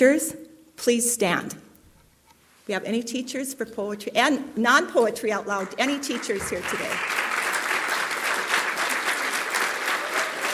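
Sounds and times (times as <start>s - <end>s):
speech: 0.0s - 1.7s, 2.7s - 7.2s
audience applause: 6.1s - 10.5s.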